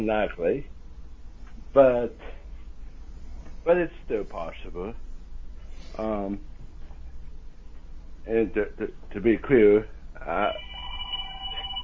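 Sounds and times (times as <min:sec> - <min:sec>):
speech: 0:00.0 - 0:00.8, 0:01.7 - 0:02.4, 0:03.6 - 0:05.1, 0:05.9 - 0:06.5, 0:08.2 - 0:10.7
phone ringing: 0:10.3 - 0:11.8.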